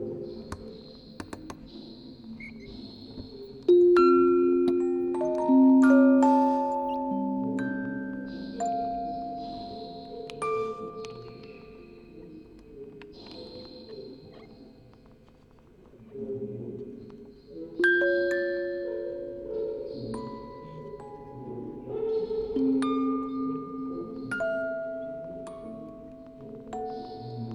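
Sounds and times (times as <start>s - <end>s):
quartet of music boxes recorded on tape with vocoder: 3.7s - 12.2s, 17.9s - 27.5s.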